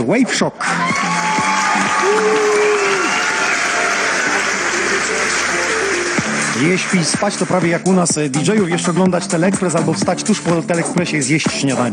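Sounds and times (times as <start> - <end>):
speech: 0.0 - 1.0, 2.0 - 2.7, 6.6 - 11.9
whoops and voices: 0.6 - 4.4
crowd applauding and cheering: 0.6 - 7.9.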